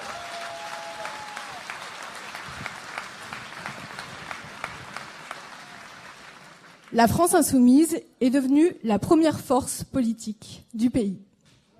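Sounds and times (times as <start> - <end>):
audience applause: 0.0 - 7.0
speech: 6.9 - 11.3.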